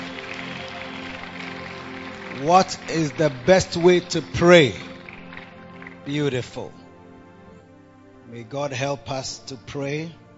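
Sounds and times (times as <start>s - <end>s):
crowd clapping: 0.0s - 6.7s
speech: 2.4s - 4.9s, 6.1s - 6.8s, 8.3s - 10.2s.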